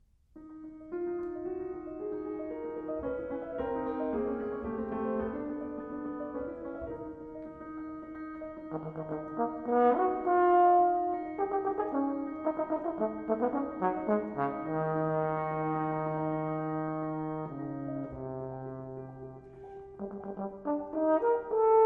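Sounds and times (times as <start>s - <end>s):
piano accompanying a horn sonata: 0.0s - 21.8s
French horn playing a sonata: 8.6s - 21.8s.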